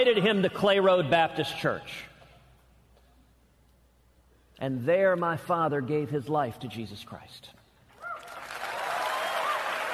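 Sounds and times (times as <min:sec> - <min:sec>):
speech: 0:00.0 - 0:02.1, 0:04.6 - 0:07.6
faint whistles and cheers: 0:08.1 - 0:09.9
crowd applause: 0:08.2 - 0:09.9.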